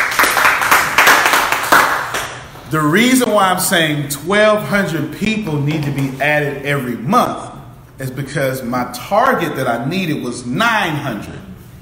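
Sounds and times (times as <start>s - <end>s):
group clapping: 0.0s - 2.6s
speech: 2.7s - 11.5s.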